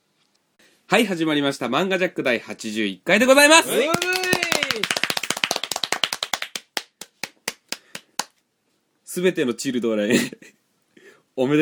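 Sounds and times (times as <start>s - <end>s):
speech: 0.9s - 4.2s, 9.2s - 10.6s, 11.4s - 11.6s
hand clapping from a small group: 3.7s - 8.4s.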